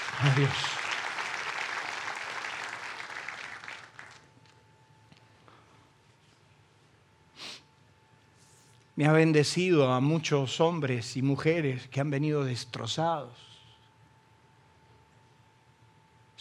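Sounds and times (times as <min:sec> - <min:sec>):
audience applause: 0:00.0 - 0:04.3
speech: 0:00.2 - 0:00.8, 0:09.0 - 0:13.5.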